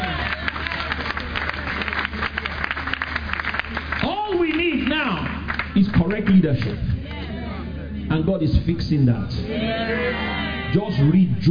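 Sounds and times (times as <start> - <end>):
audience clapping in praise: 0.0 - 6.8
speech: 6.2 - 6.9, 8.1 - 11.4.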